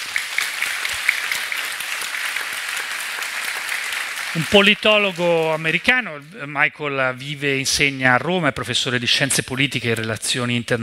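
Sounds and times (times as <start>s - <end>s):
audience applause welcoming an American political scientist onto the stage: 0.0s - 6.3s
speech: 4.4s - 10.8s.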